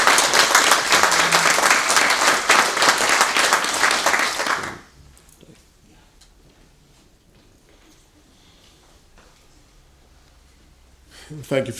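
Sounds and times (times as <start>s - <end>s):
audience applause: 0.0s - 4.9s
speech: 11.5s - 11.7s.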